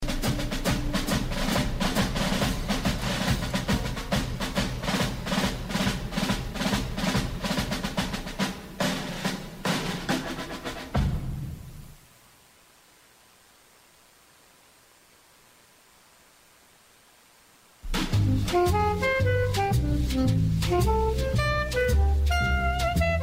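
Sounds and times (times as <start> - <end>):
jazz music: 0.0 - 11.1, 17.8 - 23.2.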